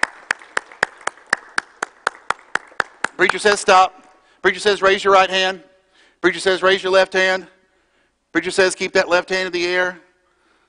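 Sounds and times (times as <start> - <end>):
audience clapping hands in unison on command: 0.0 - 3.8
speech: 3.2 - 7.6, 8.3 - 10.0.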